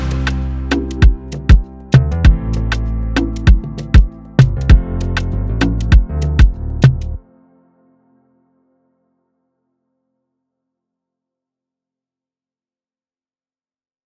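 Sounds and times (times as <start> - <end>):
afrobeat instrumental beat in C major: 0.0 - 7.2.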